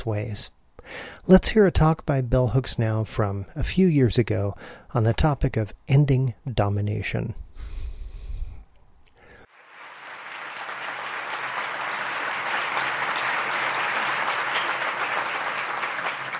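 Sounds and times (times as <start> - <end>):
speech: 0.0 - 7.7
audience standing ovation: 9.5 - 16.3.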